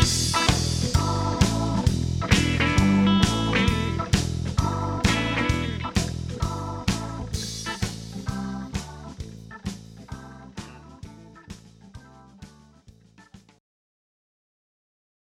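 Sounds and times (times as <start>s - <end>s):
bass playing quarter notes: 0.0s - 13.4s.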